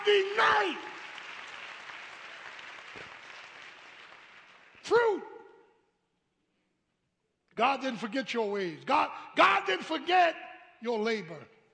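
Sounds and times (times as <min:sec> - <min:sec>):
audience applauding: 0:00.0 - 0:04.9
speech: 0:00.1 - 0:01.0, 0:07.6 - 0:11.6.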